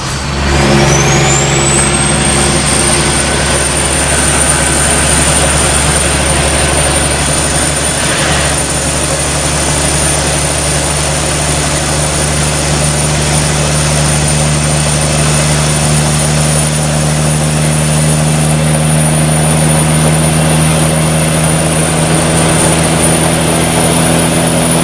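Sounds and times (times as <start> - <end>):
car engine: 0.0 - 24.8.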